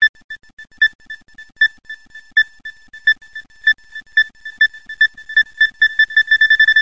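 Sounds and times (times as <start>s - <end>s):
beep: 0.1s - 6.8s.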